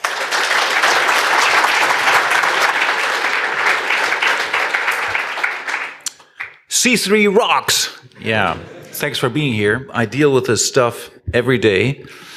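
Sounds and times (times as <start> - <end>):
audience applause: 0.0 - 6.6
speech: 6.8 - 12.3
laughter: 8.1 - 9.8.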